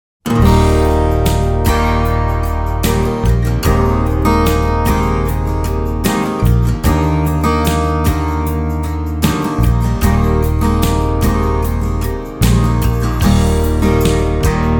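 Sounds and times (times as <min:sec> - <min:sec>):
laid-back music: 0:00.3 - 0:14.7.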